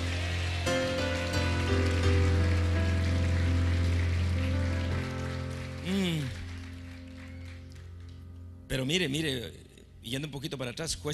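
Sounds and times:
audience applause: 0.0s - 8.2s
speech: 8.8s - 11.1s.

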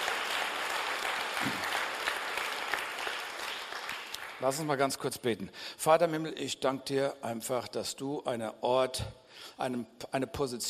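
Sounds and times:
audience applause: 0.0s - 4.7s
speech: 4.4s - 10.6s.

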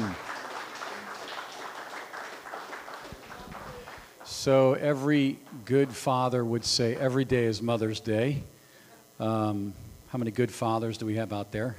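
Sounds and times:
audience clapping: 0.0s - 4.6s
speech: 4.4s - 8.6s, 9.2s - 11.7s.

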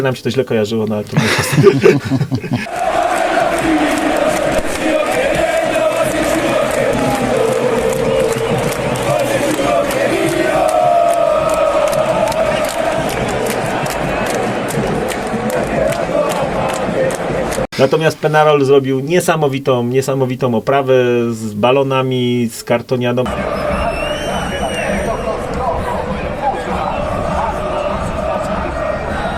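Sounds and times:
speech: 0.0s - 3.0s, 17.8s - 23.6s
laughter: 1.1s - 2.9s
huge stadium crowd chanting a sung tune in unison: 2.6s - 17.7s, 23.3s - 29.3s.

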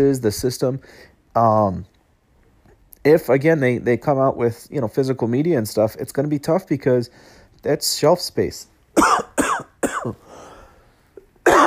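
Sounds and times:
speech: 0.0s - 1.9s, 3.0s - 9.3s, 10.0s - 10.2s
cough: 9.0s - 10.2s, 11.4s - 11.6s.

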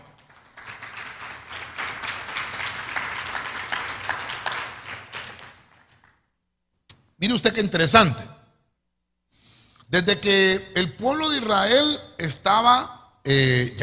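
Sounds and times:
audience clapping applause: 0.0s - 6.3s
speech: 7.2s - 8.3s, 10.0s - 13.8s.

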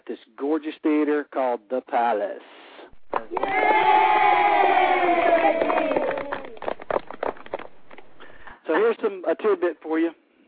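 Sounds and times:
speech: 0.1s - 6.0s, 8.7s - 10.2s
children cheering excitedly: 3.1s - 8.2s.

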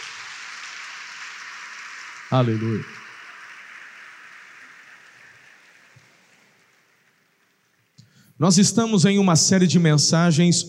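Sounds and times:
audience applause: 0.0s - 8.0s
speech: 2.3s - 3.0s, 8.4s - 10.6s.

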